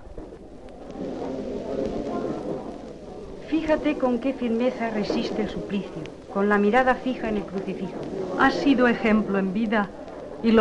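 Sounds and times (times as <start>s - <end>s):
crackling flames of a bonfire in Rouen square: 0.0s - 10.5s
speech: 3.7s - 10.5s.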